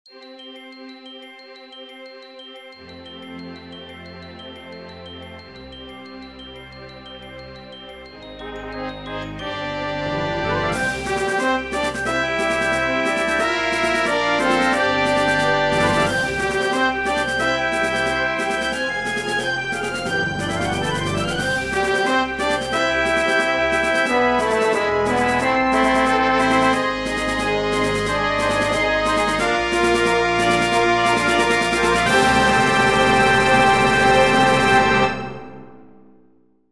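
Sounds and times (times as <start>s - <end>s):
fanfare: 8.4s - 36.2s.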